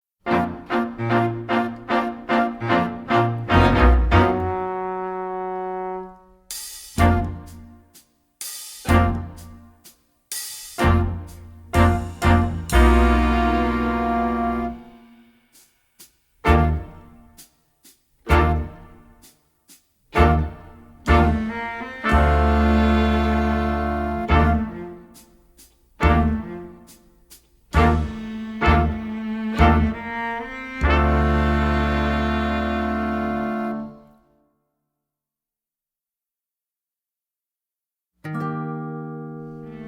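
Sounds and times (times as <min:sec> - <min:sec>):
instrumental music: 0:00.2 - 0:34.5, 0:38.2 - 0:39.8.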